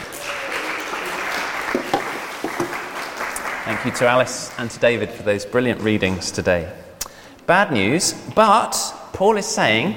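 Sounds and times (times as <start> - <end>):
audience applause: 0.0 - 5.0
speech: 3.7 - 6.9, 7.5 - 9.9.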